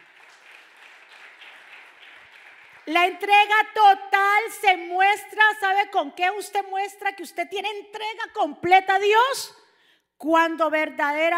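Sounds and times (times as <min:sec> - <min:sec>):
audience applauding loudly: 0:00.0 - 0:03.0
speech: 0:02.9 - 0:09.6, 0:10.2 - 0:11.3.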